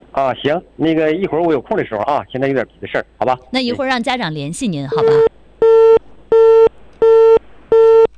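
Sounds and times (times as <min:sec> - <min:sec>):
speech: 0:00.2 - 0:05.4
telephone busy tone after a call is hung up: 0:04.9 - 0:08.1.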